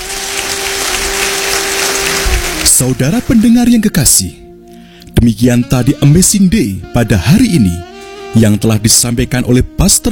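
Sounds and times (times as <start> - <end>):
applause for a preacher in a church: 0.0 - 3.0
speech: 2.8 - 4.4, 5.2 - 10.0.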